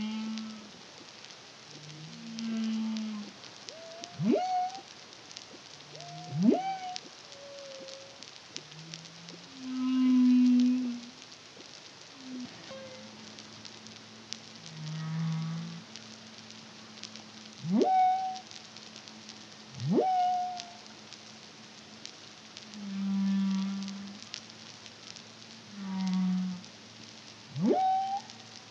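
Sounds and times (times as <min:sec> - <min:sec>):
humpback whale song: 0:00.0 - 0:00.7, 0:01.8 - 0:04.9, 0:05.9 - 0:11.2, 0:12.2 - 0:13.2, 0:17.6 - 0:18.5, 0:19.7 - 0:20.9, 0:25.7 - 0:26.7, 0:27.5 - 0:28.6
crackle and hiss: 0:00.0 - 0:28.6.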